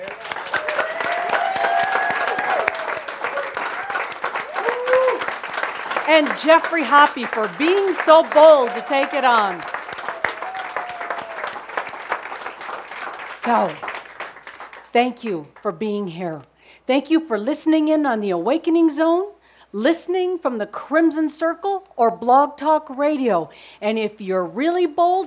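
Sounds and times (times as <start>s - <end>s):
audience applause: 0.0s - 14.9s
speech: 6.1s - 9.7s, 13.5s - 13.9s, 14.9s - 25.2s.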